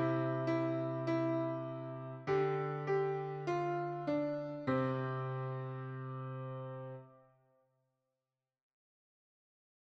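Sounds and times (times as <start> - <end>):
Christmas song on piano: 0.0 - 7.2.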